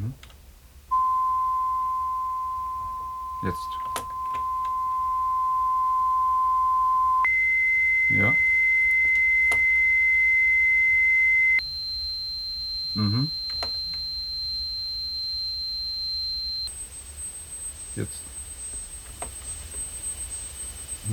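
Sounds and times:
hearing test tone beeps: 0.9s - 16.7s
speech: 3.4s - 3.8s.

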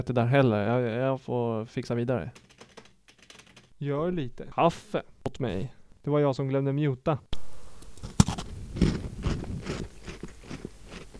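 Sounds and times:
speech: 0.0s - 2.6s, 3.8s - 7.4s
crunchy chewing: 7.4s - 11.1s.

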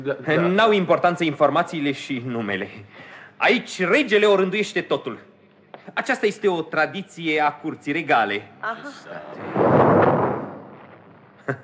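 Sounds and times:
speech: 0.0s - 9.7s
cannon salvo fired in honour of the king: 9.2s - 11.6s.

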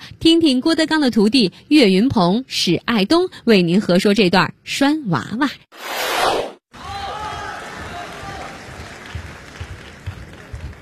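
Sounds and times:
speech: 0.2s - 6.1s
audience applause at a Beijing crosstalk comedy show: 6.9s - 10.7s.

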